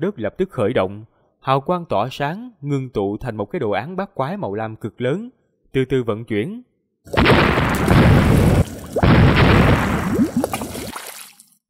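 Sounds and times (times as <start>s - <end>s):
speech: 0.0s - 7.8s
loud explosions: 7.1s - 10.9s
sound effect of crashing sea waves: 7.2s - 11.4s.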